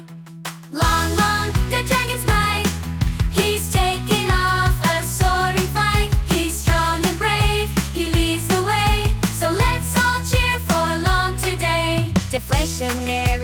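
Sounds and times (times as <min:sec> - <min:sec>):
song: 0:00.7 - 0:13.2.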